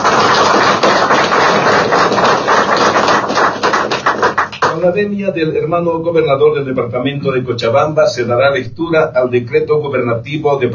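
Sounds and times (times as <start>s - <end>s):
welcoming applause: 0.0s - 4.9s
speech: 4.8s - 10.7s.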